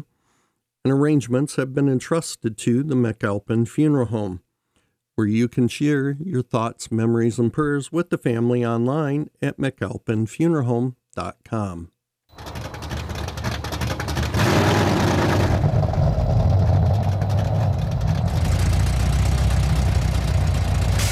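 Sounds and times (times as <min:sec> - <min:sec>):
speech: 0:00.8 - 0:04.4, 0:05.2 - 0:12.6
sports car engine idling: 0:12.4 - 0:21.0.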